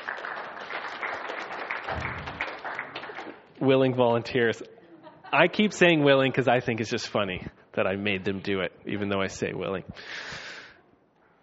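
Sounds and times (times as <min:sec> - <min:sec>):
audience clapping for willing volunteers: 0:00.0 - 0:03.6
speech: 0:03.6 - 0:10.4.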